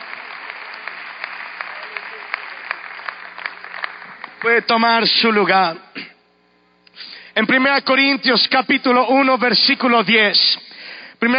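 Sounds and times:
congregation applauding at a church youth service: 0.0 - 5.3
speech: 4.4 - 5.8, 7.4 - 11.3.

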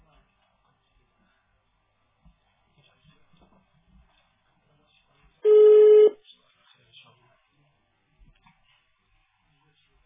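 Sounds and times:
telephone line tone after a phone call is cut off automatically: 5.4 - 6.2.

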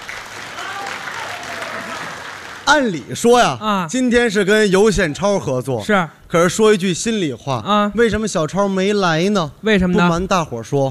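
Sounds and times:
scattered audience applause for xiangsheng crosstalk performers in Beijing: 0.0 - 3.2
speech: 2.7 - 10.8.

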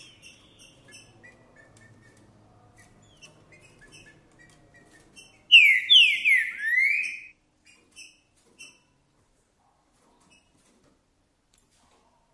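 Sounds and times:
green-winged saltator whistled song: 5.5 - 7.3.

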